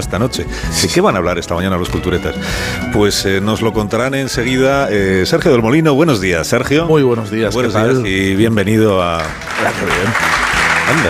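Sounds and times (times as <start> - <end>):
speech: 0.0 - 11.0
spontaneous audience applause: 9.1 - 11.0.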